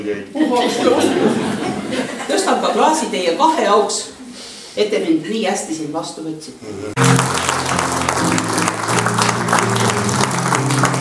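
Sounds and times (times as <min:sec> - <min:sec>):
speech: 0:00.0 - 0:04.2, 0:04.8 - 0:07.1
laughter: 0:00.4 - 0:02.8
audience applause after a theatre performance: 0:07.0 - 0:11.0.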